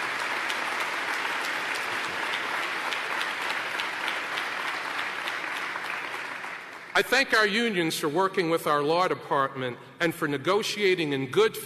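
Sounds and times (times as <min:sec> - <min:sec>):
audience applause: 0:00.0 - 0:07.0
speech: 0:07.0 - 0:11.6.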